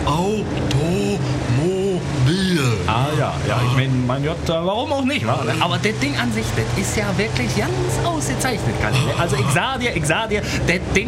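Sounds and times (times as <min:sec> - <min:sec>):
early automobile engine rumbling while driving: 0:00.0 - 0:11.0
speech: 0:03.3 - 0:11.0.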